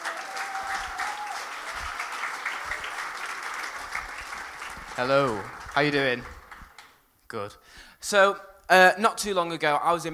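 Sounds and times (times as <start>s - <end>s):
audience applause welcoming a speaker: 0.0s - 6.9s
speech: 5.0s - 6.4s, 7.3s - 10.1s.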